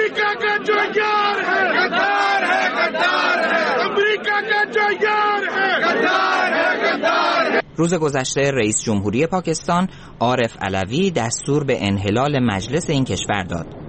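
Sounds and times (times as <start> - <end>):
large crowd of protesters chanting slogans in the street: 0.0 - 7.6
speech: 7.8 - 13.8.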